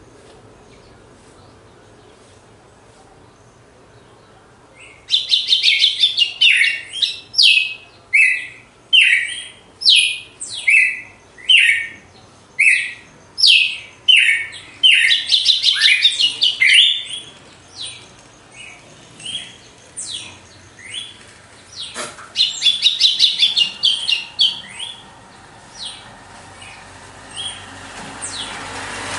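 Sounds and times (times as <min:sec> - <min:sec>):
Red-cowled cardinal whistling: 0:05.1 - 0:12.0, 0:12.6 - 0:17.2, 0:21.8 - 0:25.0.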